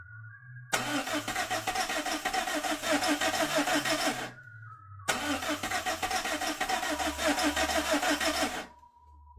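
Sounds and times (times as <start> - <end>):
car engine cranking but failing to start: 0.8 - 4.4, 5.1 - 8.8.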